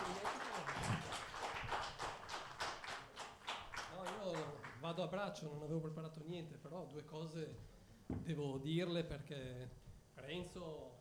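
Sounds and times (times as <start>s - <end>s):
crowd applauding: 0.0s - 4.8s
speech: 4.8s - 11.0s.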